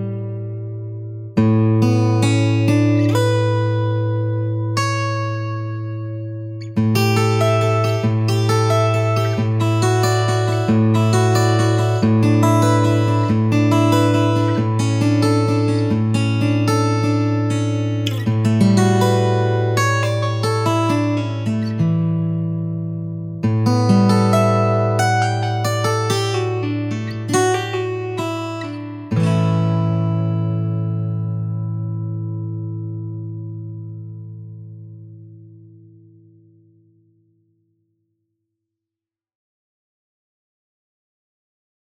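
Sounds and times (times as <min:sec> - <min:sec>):
steel-string acoustic guitar: 0:00.0 - 0:37.1.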